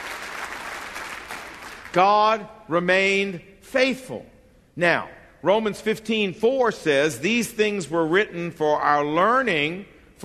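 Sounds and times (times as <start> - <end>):
audience clapping: 0.0 - 2.2
speech: 2.0 - 10.2.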